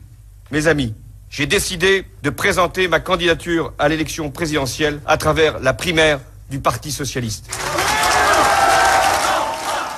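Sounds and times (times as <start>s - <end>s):
speech: 0.5s - 7.7s
supporters applauding and cheering: 7.5s - 9.9s.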